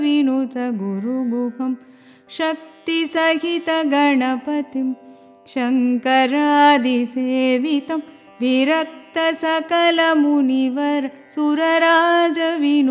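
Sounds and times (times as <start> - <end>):
carnatic music song in adi tala tisra nadai: 0.0 - 12.9.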